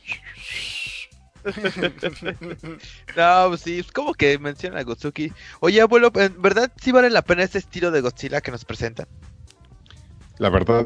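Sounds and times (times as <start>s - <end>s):
whistle: 0.0s - 1.2s
speech: 1.4s - 9.3s, 10.4s - 10.8s
laughter: 1.5s - 3.2s.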